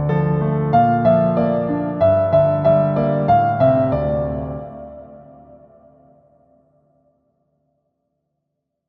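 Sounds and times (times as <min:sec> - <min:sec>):
piano cover: 0:00.0 - 0:06.6.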